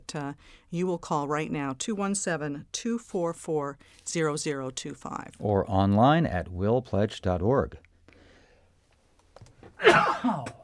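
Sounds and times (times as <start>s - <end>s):
speech: 0.1s - 7.8s, 9.8s - 10.6s
person sneezing: 9.8s - 10.6s.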